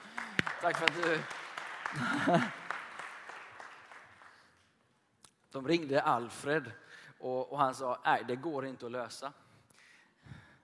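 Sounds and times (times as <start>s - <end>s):
audience applause: 0.0s - 4.5s
speech: 0.6s - 2.6s, 5.5s - 9.4s
laughter: 1.9s - 2.7s.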